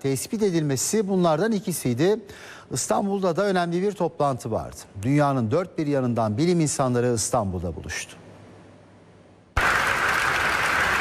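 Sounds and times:
speech: 0.0s - 8.2s
scientists applauding results of a pancreatic cancer drug: 9.6s - 11.0s.

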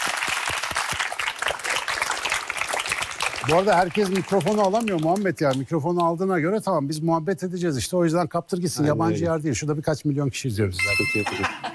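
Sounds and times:
crowd applauding: 0.0s - 5.7s
speech: 3.4s - 11.7s.

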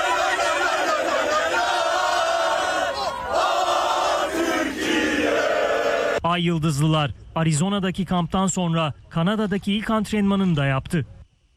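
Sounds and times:
football fans chanting and cheering: 0.0s - 6.2s
speech: 6.2s - 11.2s.

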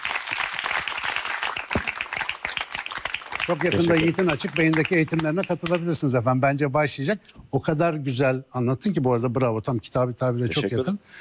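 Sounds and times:
applause: 0.0s - 6.0s
speech: 3.5s - 11.1s.

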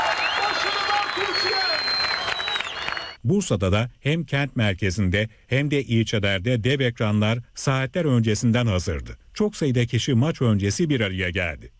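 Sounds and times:
football crowd with Turkish flags cheering: 0.0s - 3.2s
speech: 3.3s - 11.7s.

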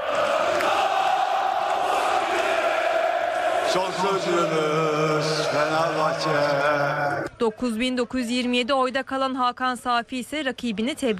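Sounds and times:
people shouting: 0.0s - 6.8s
members chanting and cheering, celebrating election win: 0.0s - 7.6s
speech: 3.7s - 11.1s.

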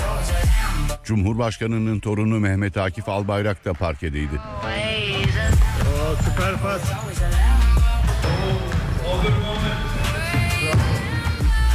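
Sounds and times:
speech: 1.1s - 7.6s
basketball bouncing on the court: 5.1s - 11.7s.

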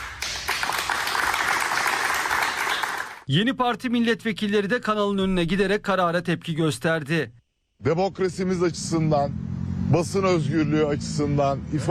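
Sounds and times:
studio staff applauding in protest: 0.0s - 3.3s
speech: 3.3s - 11.8s.

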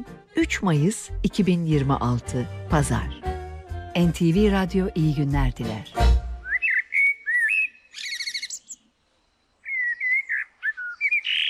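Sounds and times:
speech: 0.0s - 3.3s, 4.0s - 6.0s
blackbird singing at dawn: 6.4s - 8.9s, 9.6s - 11.4s.

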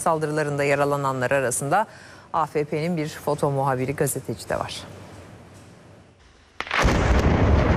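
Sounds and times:
speech: 0.0s - 5.0s
collapsing debris of a demolished house: 6.6s - 7.7s
planted explosive blast demolishing a Palestinian house in Beit Iksa: 6.6s - 7.7s.

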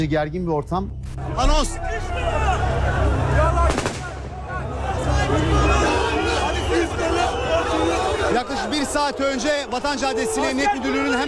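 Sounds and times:
speech: 0.0s - 3.9s, 5.3s - 5.9s, 8.4s - 11.2s
crowd noise and talking: 0.0s - 11.2s
gunfire and machine gun fire during street unrest on a city avenue: 3.7s - 4.3s.

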